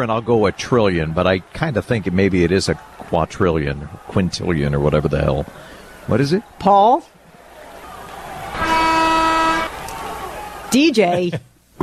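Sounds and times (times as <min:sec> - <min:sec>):
speech: 0:00.0 - 0:07.2, 0:10.7 - 0:11.8
game show wrong-answer buzzer: 0:08.6 - 0:09.7.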